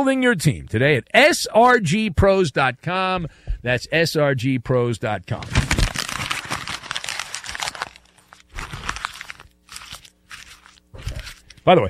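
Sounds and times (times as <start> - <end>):
speech: 0.0 - 5.6, 11.6 - 11.8
paper being folded and crumpled: 5.4 - 11.7.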